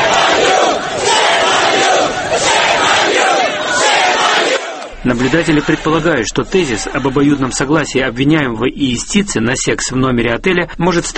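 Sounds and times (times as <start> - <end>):
group of hotel maids chanting: 0.0 - 5.8
laughter: 0.1 - 8.3
speech: 5.1 - 11.1.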